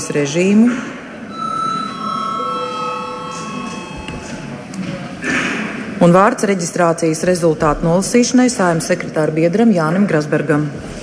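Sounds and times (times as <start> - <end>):
murmur: 0.0 - 11.0
speech: 0.1 - 0.9, 6.0 - 10.9
parliament chamber bell ringing: 1.3 - 4.6.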